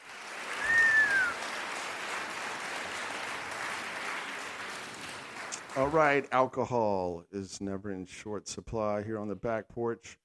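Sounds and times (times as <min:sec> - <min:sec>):
applause: 0:00.0 - 0:06.3
speech: 0:05.8 - 0:10.2.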